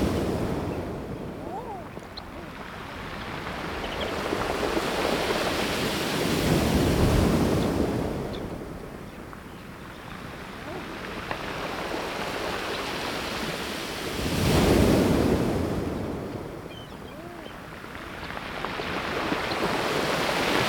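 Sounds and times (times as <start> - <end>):
ocean by day: 0.0 - 20.6.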